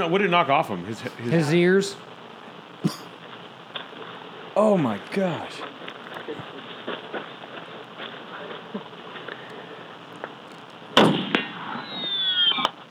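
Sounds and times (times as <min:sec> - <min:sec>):
speech: 0:00.0 - 0:02.1, 0:02.8 - 0:03.1, 0:04.6 - 0:05.7
buzzing bullet whine: 0:00.0 - 0:12.9
low hum: 0:00.0 - 0:12.9
ricocheting bullet striking plastic hearing protection: 0:11.0 - 0:11.5.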